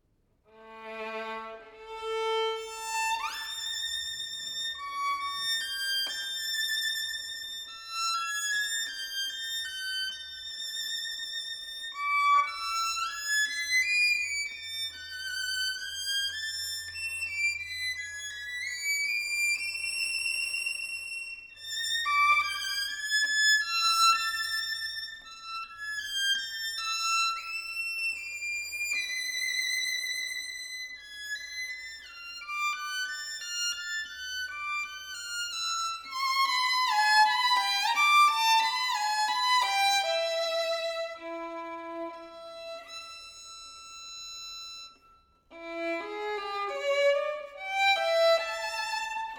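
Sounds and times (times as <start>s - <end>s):
solo violin: 0.5s - 49.3s.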